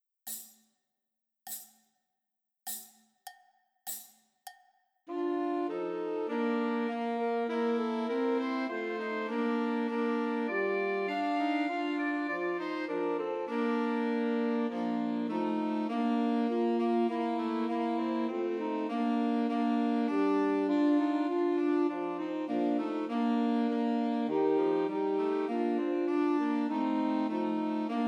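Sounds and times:
two alto saxophones: 5.1s - 28.0s.

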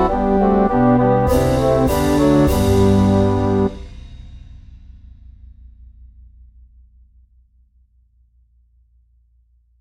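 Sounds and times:
mini bassoon track with melody: 0.0s - 3.8s.

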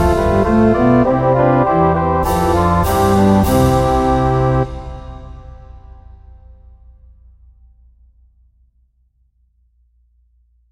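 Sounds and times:
bassoon melody: 0.0s - 5.8s.

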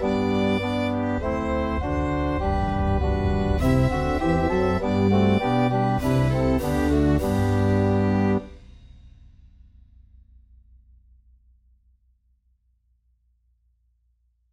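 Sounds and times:
violin melody: 0.0s - 8.5s.

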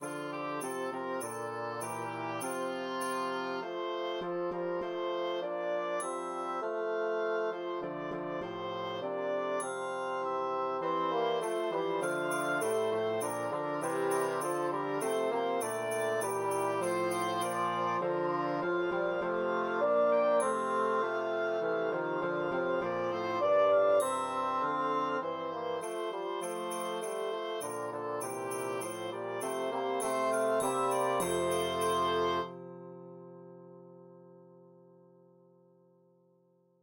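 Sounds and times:
tenoroon melody: 0.0s - 34.6s.

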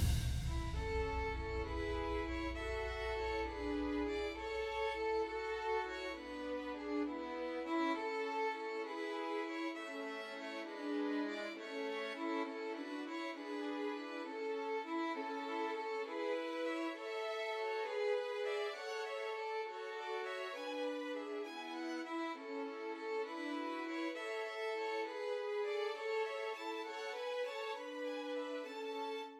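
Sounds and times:
three violins playing trios: 0.1s - 29.3s.

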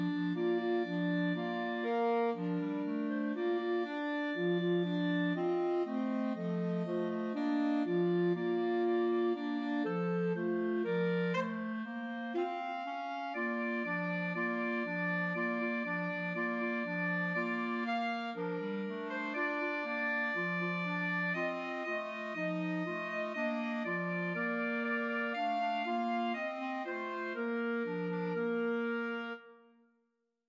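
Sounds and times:
trio for two clarinets and alto saxophone: 0.0s - 29.5s.

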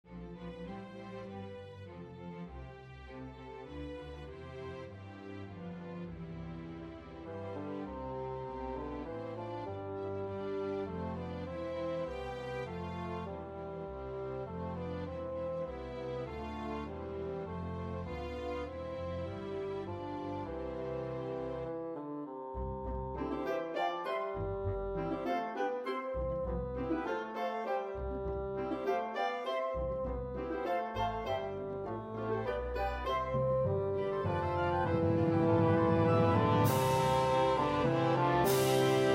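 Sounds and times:
tenoroon melody: 7.2s - 39.1s.

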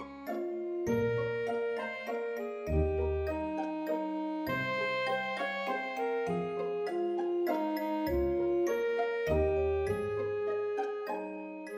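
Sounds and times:
saxophone melody: 0.1s - 11.6s.

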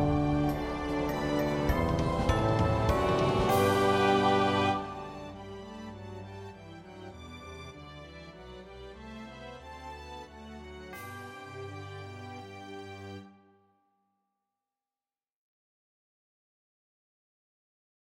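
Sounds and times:
tuba melody: 0.0s - 5.4s.

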